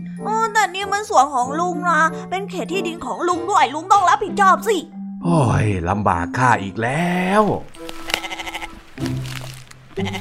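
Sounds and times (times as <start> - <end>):
speech: 0.2 - 7.8, 10.0 - 10.1
goat bleating: 7.8 - 9.0, 9.9 - 10.1.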